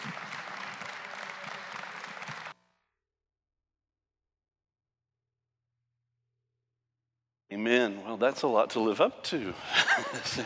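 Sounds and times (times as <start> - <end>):
audience applause: 0.0 - 2.6
speech: 7.6 - 10.4
laughter: 9.5 - 10.4.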